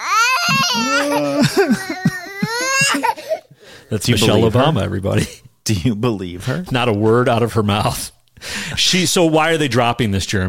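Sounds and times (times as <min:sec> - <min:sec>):
uncontrollable sobbing from a played recording: 0:00.2 - 0:03.6, 0:04.2 - 0:05.4
laughter: 0:00.5 - 0:03.1
speech: 0:00.5 - 0:03.3, 0:03.9 - 0:10.4.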